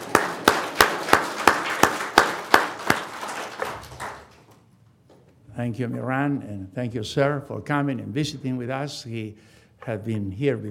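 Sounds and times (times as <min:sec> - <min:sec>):
audience rhythmic clapping in unison: 0:00.0 - 0:04.6
speech: 0:05.6 - 0:10.7.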